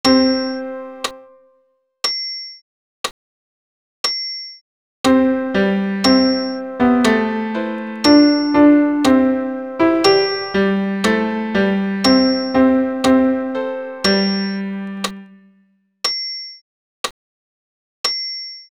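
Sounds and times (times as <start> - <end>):
piano accompaniment: 0.0 - 1.5, 5.1 - 15.6.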